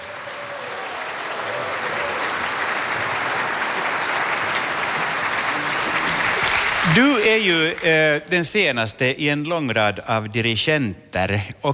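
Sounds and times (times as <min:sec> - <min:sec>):
audience applause: 0:00.0 - 0:08.3
speech: 0:06.8 - 0:11.7.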